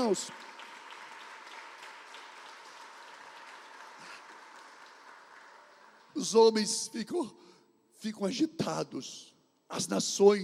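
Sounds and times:
speech: 0.0s - 0.5s, 6.2s - 10.4s
audience applauding: 0.0s - 6.6s.

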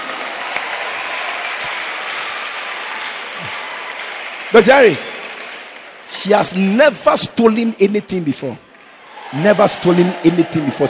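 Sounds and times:
audience applause: 0.0s - 6.2s, 8.7s - 10.8s
speech: 4.5s - 5.1s, 6.1s - 8.7s, 9.3s - 10.8s.

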